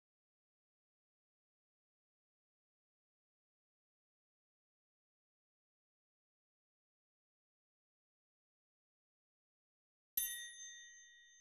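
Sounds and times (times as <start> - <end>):
triangle: 10.2 - 11.4.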